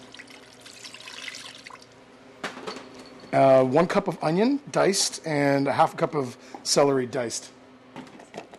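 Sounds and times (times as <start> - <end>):
water poured into a straight-edge frying pan with ground pork: 0.0 - 2.0
speech: 3.3 - 7.6.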